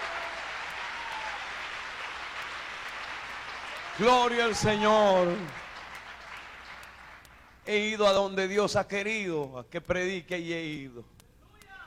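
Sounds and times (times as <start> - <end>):
audience applause: 0.0 - 7.2
speech: 4.0 - 5.6, 7.7 - 11.1.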